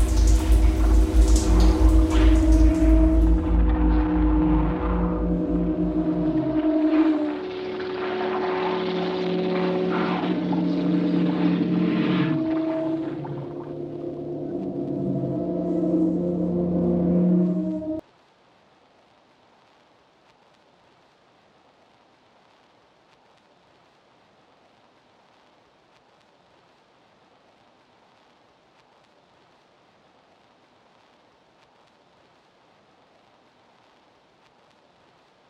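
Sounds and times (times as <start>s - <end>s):
synth pads: 0.0s - 18.0s.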